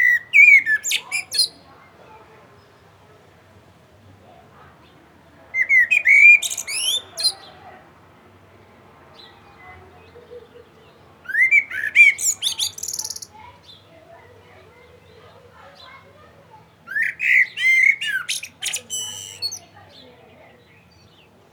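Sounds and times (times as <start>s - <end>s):
common blackbird singing: 0.0s - 1.7s, 4.8s - 7.7s, 9.1s - 14.0s, 14.8s - 21.4s.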